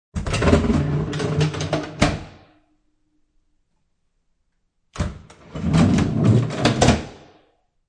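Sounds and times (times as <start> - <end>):
drawer on rollers opening and shutting: 0.2 - 2.4, 5.0 - 7.2.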